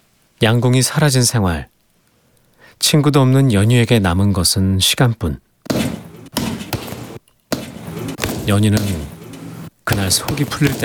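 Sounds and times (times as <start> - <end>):
speech: 0.4 - 1.8, 2.8 - 5.8, 8.5 - 9.1, 9.9 - 10.8
rough noisy background: 5.6 - 10.8
punches hitting a sandbag: 5.7 - 10.8.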